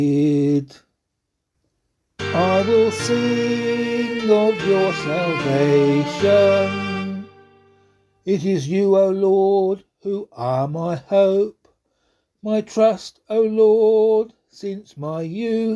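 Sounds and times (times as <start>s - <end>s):
psalm in C sung by voice: 2.2s - 11.5s, 12.6s - 15.7s.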